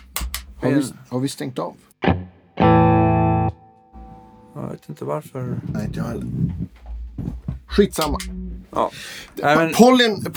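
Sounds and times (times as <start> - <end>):
speech: 0.6 - 2.3, 4.8 - 6.7, 7.8 - 10.3
electric guitar through always-on boost pedal: 2.0 - 4.6.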